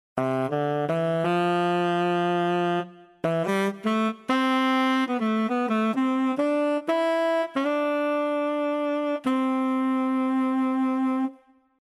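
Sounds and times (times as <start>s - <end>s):
saxophone: 0.2s - 11.8s.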